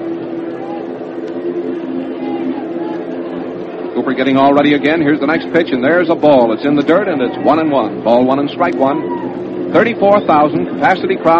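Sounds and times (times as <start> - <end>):
airplane droning overhead: 0.0 - 11.3
speech: 4.1 - 11.3.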